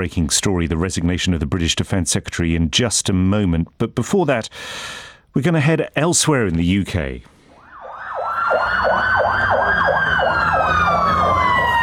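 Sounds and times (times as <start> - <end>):
speech: 0.0 - 7.4
emergency service siren yelping in Belfast at night: 7.5 - 11.8.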